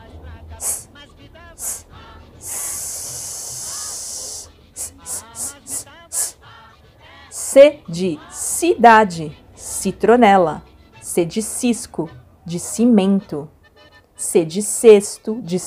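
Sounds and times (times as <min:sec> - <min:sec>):
short sharp sibilant bursts: 0:00.6 - 0:00.9, 0:01.5 - 0:06.4, 0:07.3 - 0:08.7, 0:09.6 - 0:09.9
voice hissing S sound: 0:00.6 - 0:00.9, 0:01.6 - 0:06.4, 0:07.3 - 0:07.7
speech: 0:07.6 - 0:13.6, 0:14.2 - 0:15.6.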